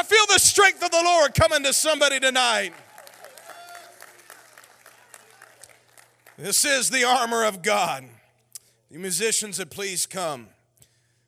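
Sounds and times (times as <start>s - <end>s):
speech: 0.0s - 2.9s, 6.4s - 8.2s, 8.9s - 10.6s
audience clapping hands: 0.0s - 7.2s.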